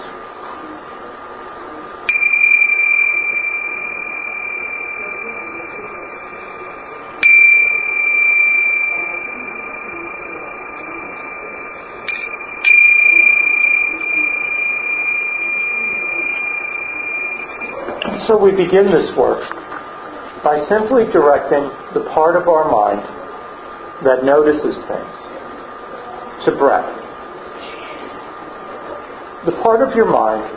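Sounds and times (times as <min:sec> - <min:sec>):
meditation bells ringing: 0:02.1 - 0:18.8
speech: 0:18.4 - 0:19.6, 0:20.4 - 0:23.2, 0:24.0 - 0:25.2, 0:26.4 - 0:27.0, 0:29.4 - 0:30.5.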